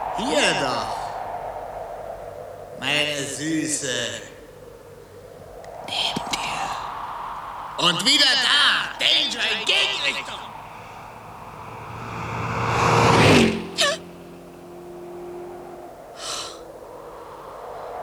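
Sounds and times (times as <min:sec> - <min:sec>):
speech: 0:00.2 - 0:01.0, 0:02.8 - 0:04.3, 0:07.8 - 0:10.5
car driving past: 0:08.8 - 0:17.2.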